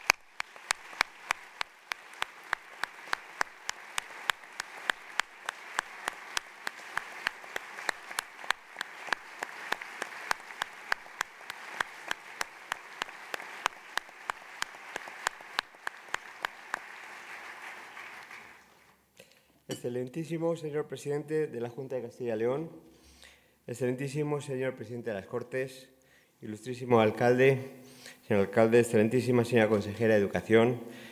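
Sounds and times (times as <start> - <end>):
audience applause: 0.0 - 18.9
speech: 19.8 - 22.9, 23.7 - 31.1.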